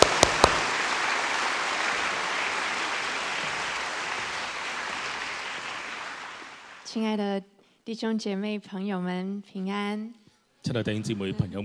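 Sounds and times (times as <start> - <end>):
audience applause welcoming speakers: 0.0 - 6.9
speech: 6.9 - 11.6.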